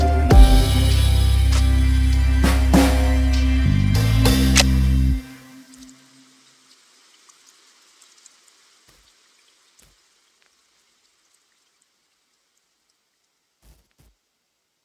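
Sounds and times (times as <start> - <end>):
slowed-down lofi hip hop: 0.0 - 5.0.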